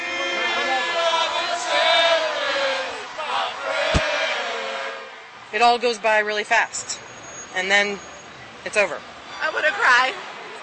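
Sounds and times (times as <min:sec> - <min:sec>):
parade crowd yelling and cheering: 0:00.0 - 0:06.2
sharp crack: 0:03.9 - 0:04.2
speech: 0:05.6 - 0:06.9, 0:07.6 - 0:10.3.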